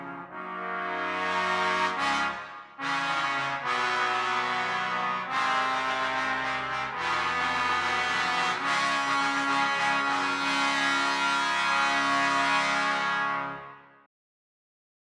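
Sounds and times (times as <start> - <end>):
trombone fanfare: 0.0 - 13.8.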